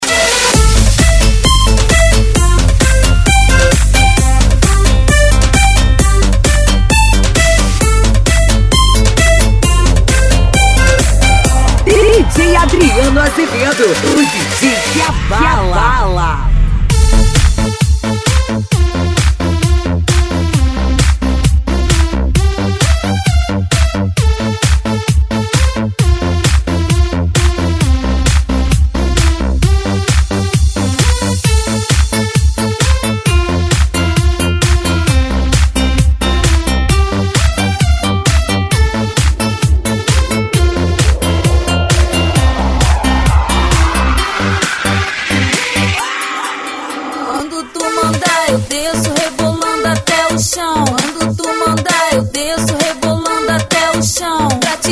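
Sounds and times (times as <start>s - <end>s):
electro house and electro funk music: 0.0s - 54.9s.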